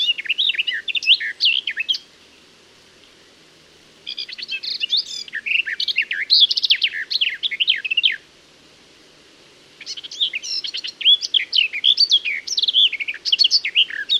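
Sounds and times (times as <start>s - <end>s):
garden warbler singing: 0.0s - 8.3s, 9.6s - 14.1s.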